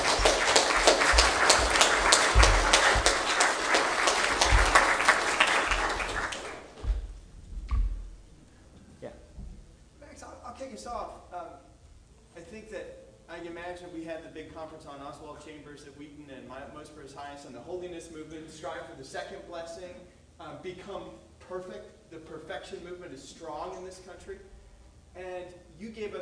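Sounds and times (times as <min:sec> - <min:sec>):
audience applause: 0:00.0 - 0:07.0
speech: 0:18.0 - 0:24.5, 0:25.2 - 0:26.1.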